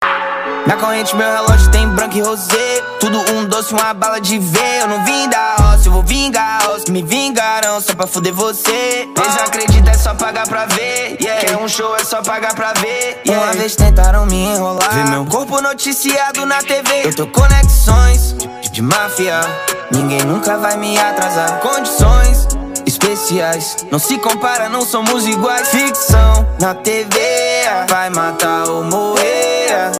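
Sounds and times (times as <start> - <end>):
music: 0.0 - 29.9.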